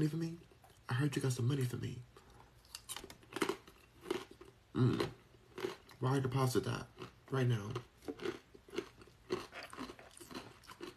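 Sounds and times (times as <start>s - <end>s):
speech: 0.0s - 2.1s, 4.7s - 5.2s, 6.0s - 7.9s
crunchy chewing on a hummus snack: 2.6s - 6.2s, 6.9s - 10.9s.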